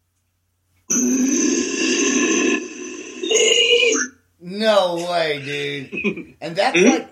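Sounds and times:
speech: 0.9 - 1.6, 4.9 - 7.0
person imitating a low growl: 0.9 - 4.1.

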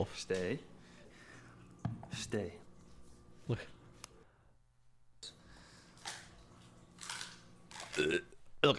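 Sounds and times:
speech: 0.0 - 0.7, 2.1 - 2.6, 3.5 - 3.8, 8.0 - 8.7
dog crunching a chicken foot: 6.9 - 8.0.

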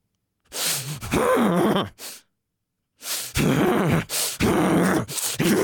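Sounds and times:
forced deep stressful huffing breaths: 0.5 - 1.3, 3.0 - 5.5.

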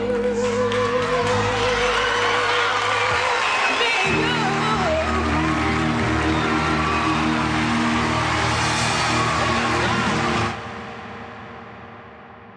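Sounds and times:
audience cheering in concert recording: 0.2 - 11.1.

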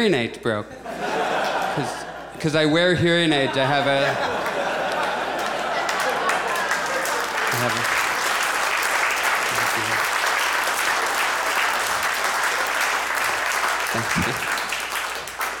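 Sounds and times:
speech: 0.0 - 1.2, 1.8 - 4.5, 7.5 - 8.0, 14.0 - 14.5
laughter: 0.7 - 8.7, 9.4 - 10.1, 13.8 - 14.7
audience applause: 4.0 - 15.5.

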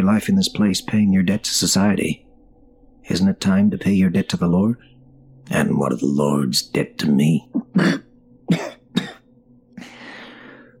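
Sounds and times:
speech: 0.0 - 2.3, 3.0 - 4.9, 5.5 - 8.7
wet, bloody cough: 7.5 - 9.2.

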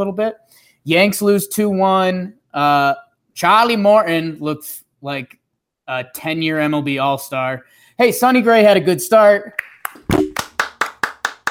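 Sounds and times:
speech: 0.0 - 10.2
hands clapping: 9.5 - 11.4.

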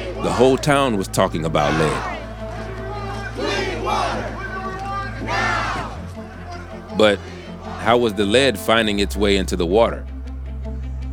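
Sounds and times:
angry protest crowd chanting: 0.0 - 8.0
speech: 0.2 - 2.1, 7.0 - 10.1.

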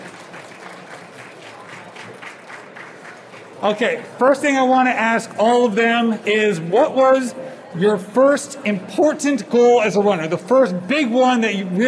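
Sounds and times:
audience applause: 0.0 - 4.0
speech: 3.6 - 11.8.

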